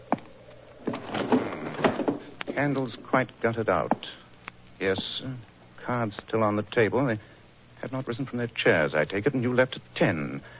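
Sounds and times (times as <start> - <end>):
window being closed: 0.8 - 2.6
speech: 2.6 - 4.2, 4.8 - 10.5.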